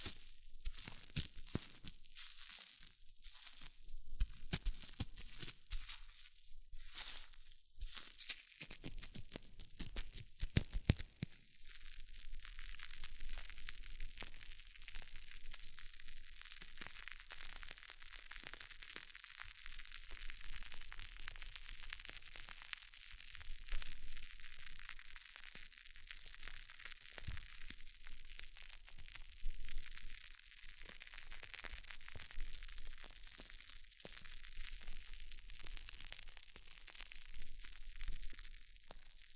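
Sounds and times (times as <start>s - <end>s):
hair mousse fizzing and crackling: 0.0s - 39.3s.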